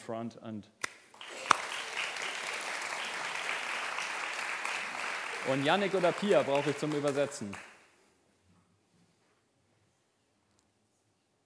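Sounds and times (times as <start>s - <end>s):
speech: 0.1s - 0.8s, 5.4s - 7.7s
applause: 1.1s - 7.9s.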